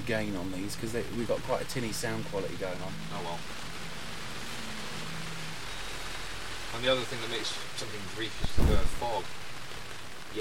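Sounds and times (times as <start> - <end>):
rain falling in wind outdoors: 0.0 - 10.3
wind: 0.0 - 10.3
speech: 0.1 - 3.7, 6.7 - 9.4.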